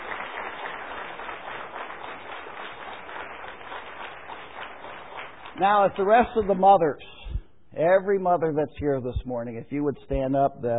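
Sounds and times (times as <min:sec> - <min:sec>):
audience applause: 0:00.0 - 0:06.4
speech: 0:05.6 - 0:07.1, 0:07.8 - 0:10.7.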